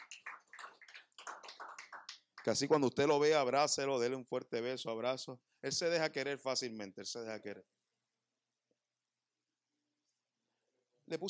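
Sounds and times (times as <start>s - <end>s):
audience applause: 0.0s - 2.7s
speech: 2.4s - 7.8s, 11.1s - 11.2s.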